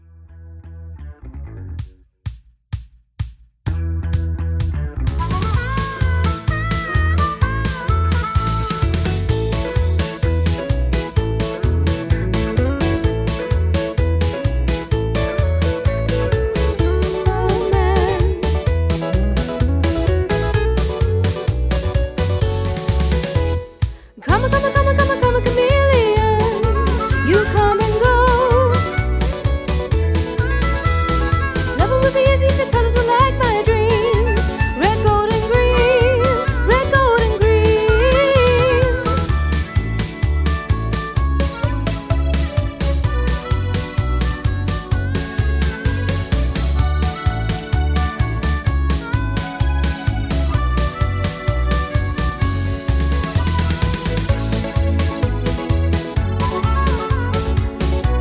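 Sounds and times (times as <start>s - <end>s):
instrumental music: 3.2s - 58.1s
background vocals: 17.0s - 18.5s.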